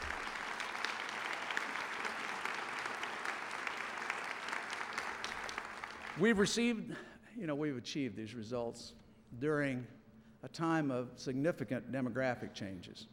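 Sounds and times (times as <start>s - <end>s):
audience applause: 0.0s - 6.4s
speech: 6.2s - 13.1s.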